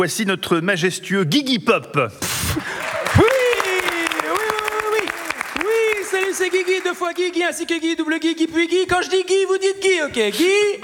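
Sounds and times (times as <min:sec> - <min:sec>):
speech: 0:00.0 - 0:03.4, 0:06.2 - 0:10.8
studio audience applause: 0:02.6 - 0:07.4.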